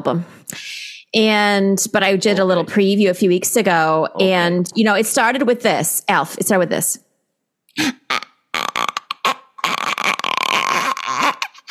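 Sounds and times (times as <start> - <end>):
speech: 0.0 - 0.4, 1.2 - 7.0, 7.8 - 8.2
voice imitating a creaking door swinging open: 7.9 - 11.7.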